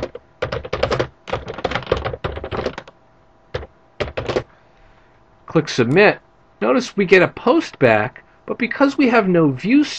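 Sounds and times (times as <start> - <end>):
rapid typing on a computer keyboard entering text into a form: 0.0 - 4.5
speech: 5.5 - 9.9.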